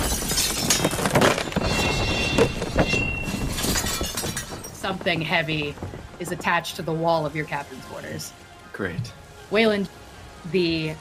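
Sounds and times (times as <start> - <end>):
glass shattering: 0.0 - 5.0
speech: 4.9 - 11.0.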